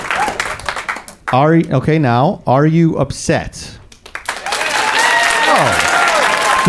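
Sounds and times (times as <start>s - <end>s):
audience clapping, fewer people, stronger claps: 0.0s - 1.8s, 3.9s - 6.6s
speech: 1.3s - 3.8s, 5.6s - 5.8s.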